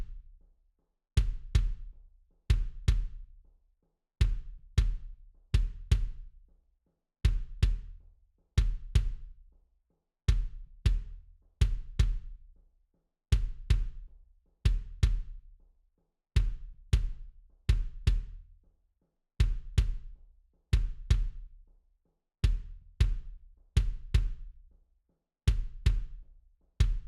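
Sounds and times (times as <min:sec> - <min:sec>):
kick drum: 0:00.0 - 0:00.4, 0:01.2 - 0:03.4, 0:04.2 - 0:06.5, 0:07.2 - 0:09.5, 0:10.3 - 0:12.6, 0:13.3 - 0:15.6, 0:16.4 - 0:18.6, 0:19.4 - 0:21.6, 0:22.4 - 0:24.7, 0:25.5 - 0:27.0.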